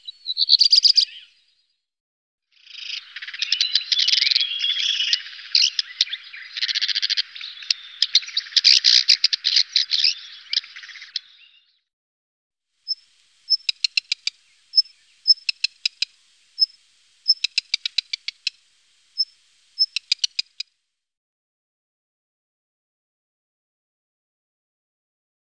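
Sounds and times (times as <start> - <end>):
black redstart song strophes: 0.0 - 1.8, 2.5 - 11.9, 12.9 - 20.6.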